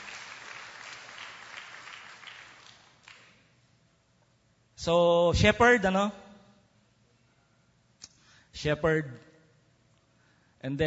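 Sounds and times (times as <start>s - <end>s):
church congregation applauding: 0.0s - 3.5s
speech: 4.8s - 6.2s, 8.6s - 9.3s, 10.6s - 10.8s.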